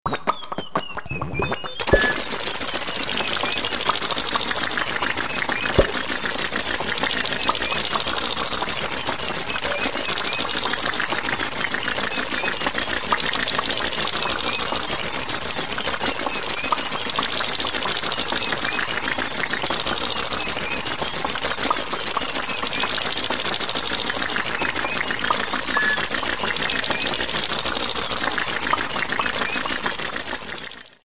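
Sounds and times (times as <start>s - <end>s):
funny cartoon car starting and running: 0.2s - 31.0s.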